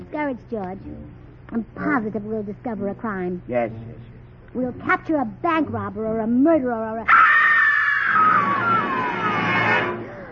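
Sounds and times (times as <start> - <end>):
speech: 0.1 - 7.2, 8.1 - 8.8
woman screaming: 7.1 - 9.8.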